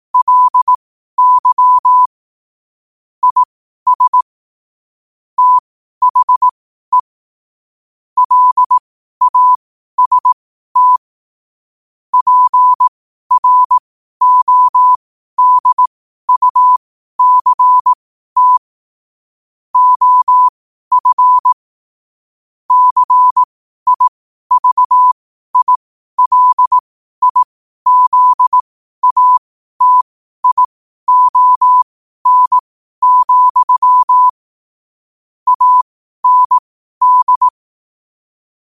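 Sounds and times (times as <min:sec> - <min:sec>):
morse code at 5 wpm: 0:00.2 - 0:02.1, 0:03.2 - 0:04.2, 0:05.4 - 0:07.1, 0:08.2 - 0:11.0, 0:12.2 - 0:18.6, 0:19.8 - 0:21.6, 0:22.7 - 0:34.4, 0:35.5 - 0:37.6.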